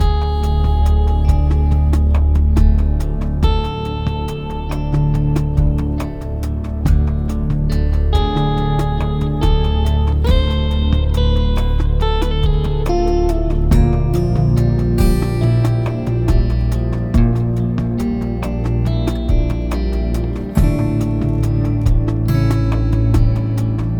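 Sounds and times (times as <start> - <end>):
menu music loop: 0.0 - 23.9.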